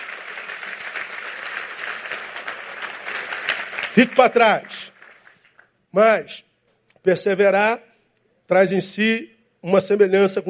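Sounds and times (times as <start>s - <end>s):
audience applause: 0.0s - 5.7s
speech: 4.0s - 4.8s, 6.0s - 7.9s, 8.5s - 10.4s.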